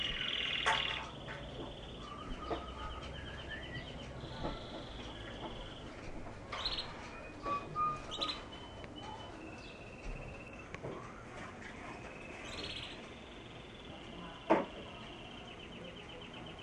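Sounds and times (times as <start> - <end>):
canary song: 0.0 - 16.6.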